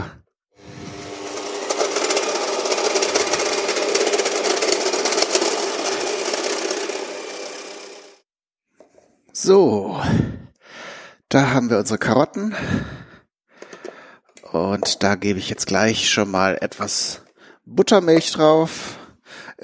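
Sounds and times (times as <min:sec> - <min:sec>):
stand mixer running: 0:00.6 - 0:08.2
speech: 0:09.4 - 0:10.3, 0:11.4 - 0:13.0, 0:14.5 - 0:19.0.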